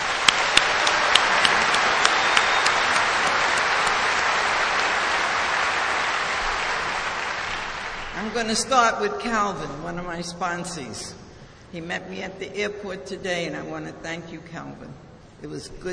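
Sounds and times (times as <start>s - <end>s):
audience round of applause: 0.0s - 8.4s
speech: 8.4s - 15.9s.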